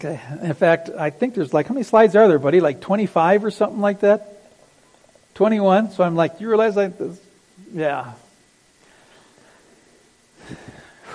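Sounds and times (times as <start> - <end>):
speech: 0.0 - 4.3, 5.4 - 8.2
quiet hiss: 0.0 - 11.1
speaker taking a deep breath: 10.4 - 11.1.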